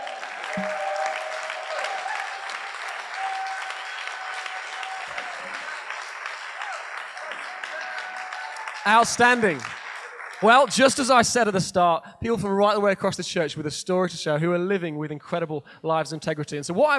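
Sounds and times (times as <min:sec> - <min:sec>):
audience clapping: 0:00.0 - 0:11.6
speech: 0:00.6 - 0:00.8, 0:08.9 - 0:09.7, 0:10.4 - 0:16.9.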